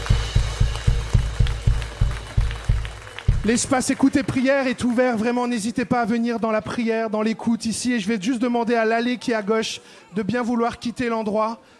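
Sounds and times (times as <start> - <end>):
audience clapping along in a rhythmic beat: 0.0 - 6.5
crowd noise: 0.0 - 11.7
speech: 3.4 - 11.7.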